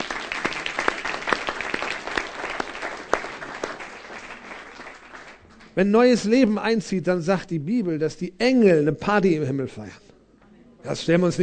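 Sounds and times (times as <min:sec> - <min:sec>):
audience applause: 0:00.0 - 0:05.8
louder individual claps: 0:00.0 - 0:05.8
speech: 0:05.8 - 0:10.0, 0:10.8 - 0:11.4.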